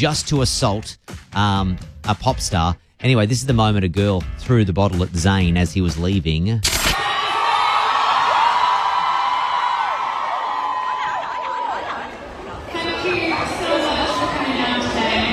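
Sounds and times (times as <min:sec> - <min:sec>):
speech: 0:00.0 - 0:06.8
concert crowd cheering: 0:07.0 - 0:15.3.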